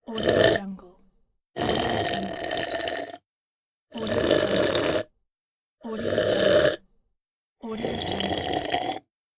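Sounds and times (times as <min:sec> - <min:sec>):
person sipping coffee: 0:01.6 - 0:03.2, 0:04.0 - 0:05.1, 0:06.0 - 0:06.8, 0:07.8 - 0:09.0.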